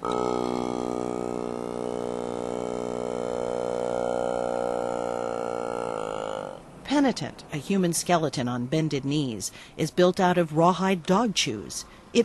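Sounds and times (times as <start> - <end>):
motorized plastic-bottle mouth mimicking throat singing: 0.0 - 6.8
speech: 6.9 - 12.2.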